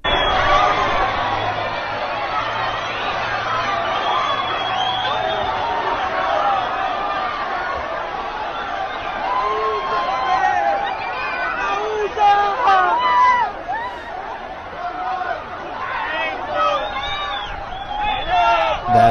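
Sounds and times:
large crowd of about 1,000 people chattering: 0.0s - 19.0s.

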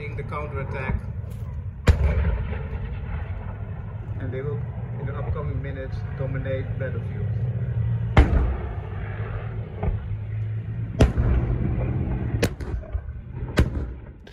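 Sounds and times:
low engine-like rumble: 0.0s - 14.3s
speech: 0.2s - 1.4s, 4.2s - 7.4s
heavy weapons firing during military exercise: 1.8s - 3.6s, 8.2s - 8.8s, 11.0s - 14.3s.

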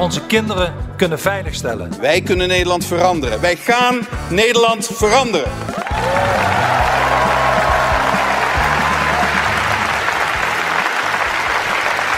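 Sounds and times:
speech: 0.0s - 6.7s
audience applause: 5.6s - 12.1s.

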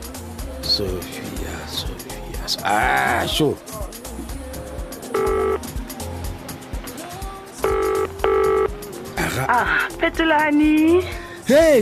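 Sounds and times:
speech: 0.7s - 3.7s, 9.4s - 11.8s
telephone ringing while a call is placed: 5.1s - 5.7s, 7.6s - 8.8s.

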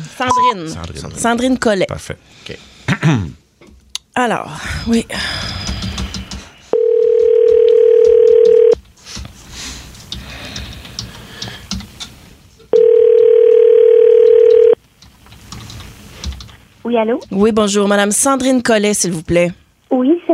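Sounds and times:
speech: 0.2s - 3.4s, 4.2s - 5.6s, 16.9s - 20.3s
telephone ring-back tone: 6.8s - 8.8s, 12.7s - 14.8s.

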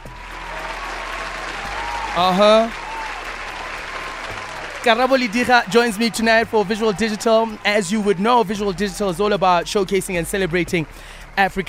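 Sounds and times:
round of applause: 0.0s - 11.6s
speech: 2.2s - 2.8s, 4.8s - 11.6s.

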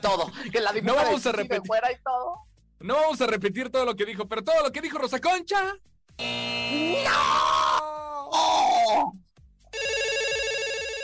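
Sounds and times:
speech: 0.0s - 9.2s
telephone ringing in electronic bursts: 9.7s - 11.0s.

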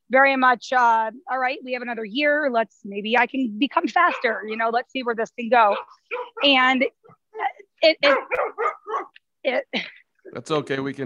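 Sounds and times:
speech: 0.1s - 11.0s
puppy barking and yipping: 4.0s - 4.6s, 5.7s - 6.5s, 8.0s - 9.2s.

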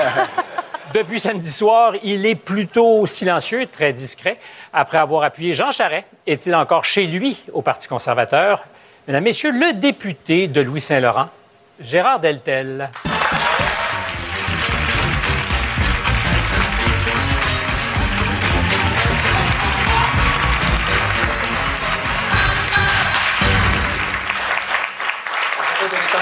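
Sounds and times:
laughter: 0.0s - 1.2s
speech: 0.1s - 13.4s
studio audience applause: 13.0s - 26.2s.

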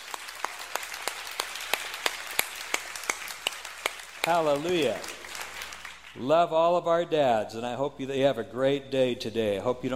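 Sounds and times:
audience applause: 0.0s - 6.2s
steady evenly spaced single clap: 0.0s - 6.2s
speech: 4.2s - 5.2s, 6.2s - 9.9s.

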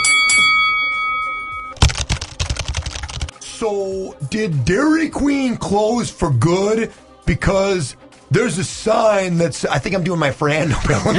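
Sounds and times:
bell ringing: 0.0s - 1.8s
speech: 3.6s - 11.1s
laughter: 10.5s - 11.1s.

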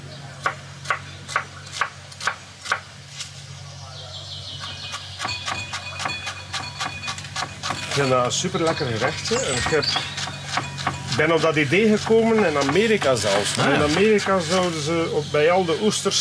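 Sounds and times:
knife finely chopping a shallot: 0.4s - 2.9s, 4.9s - 14.6s
speech: 8.0s - 10.2s, 11.2s - 16.2s.

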